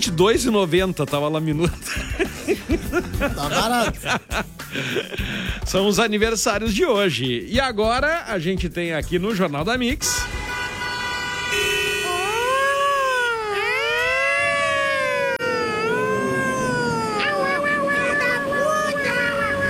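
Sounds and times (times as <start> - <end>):
speech: 0.0 - 10.4
laughter: 1.6 - 5.7, 16.0 - 19.6
siren in news bulletin jingle: 10.4 - 19.6.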